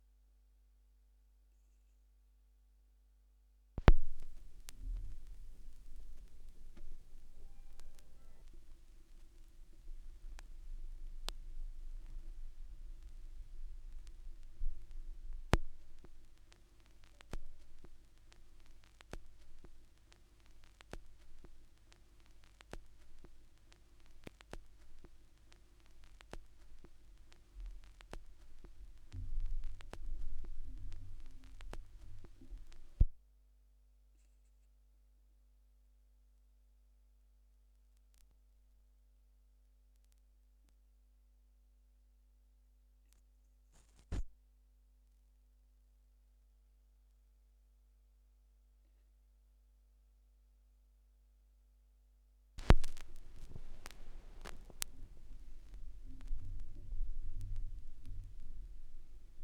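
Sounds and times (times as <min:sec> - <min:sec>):
vinyl record noise: 0:03.8 - 0:33.2, 0:43.8 - 0:44.3, 0:52.6 - 0:59.4.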